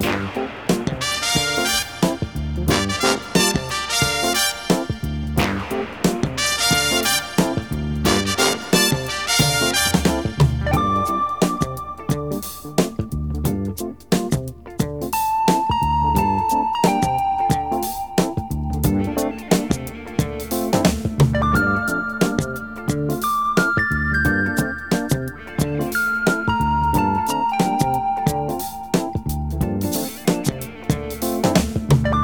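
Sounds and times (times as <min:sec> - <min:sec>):
phonk music loop: 0:00.0 - 0:32.2.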